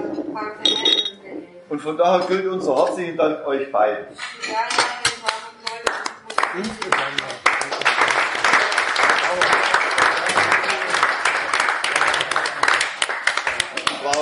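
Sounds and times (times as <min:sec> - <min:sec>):
speech: 0:00.4 - 0:00.8, 0:01.7 - 0:04.9, 0:06.6 - 0:07.5
audience applause: 0:06.4 - 0:14.2.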